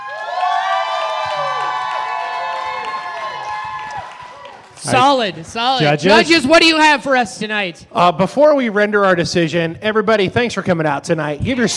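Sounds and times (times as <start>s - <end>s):
crowd cheering and whooping: 0.0s - 6.8s
clapping: 0.1s - 5.0s
speech: 4.8s - 11.7s.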